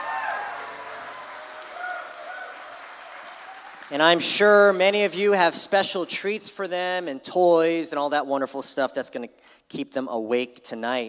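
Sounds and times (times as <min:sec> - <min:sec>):
brief cheers: 0:00.0 - 0:03.9
audience applause: 0:00.0 - 0:04.8
speech: 0:03.9 - 0:11.0.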